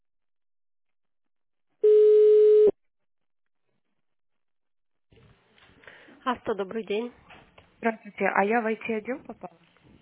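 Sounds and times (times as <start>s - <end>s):
telephone line tone while dialing extension: 1.8s - 2.7s
speech: 6.2s - 7.2s, 7.8s - 9.7s.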